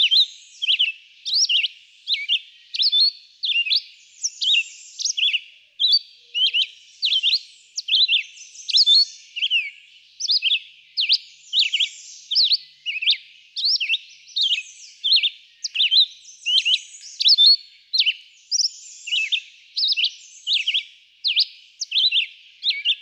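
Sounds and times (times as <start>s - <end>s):
red-eyed vireo song: 0.0s - 23.0s.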